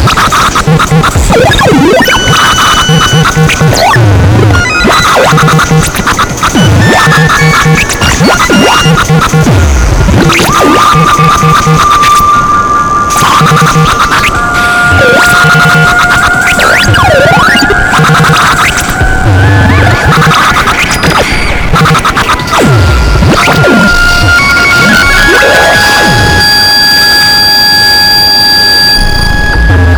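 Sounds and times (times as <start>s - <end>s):
tape noise: 0.0s - 29.9s.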